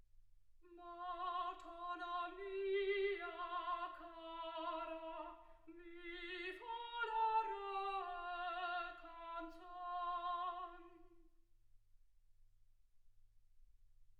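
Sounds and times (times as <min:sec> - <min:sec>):
soprano singing: 0:00.6 - 0:11.2.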